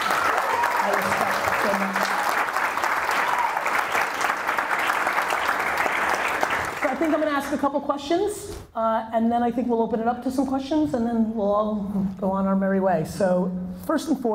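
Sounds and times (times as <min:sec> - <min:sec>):
audience applause: 0:00.0 - 0:07.2
speech: 0:07.5 - 0:14.3.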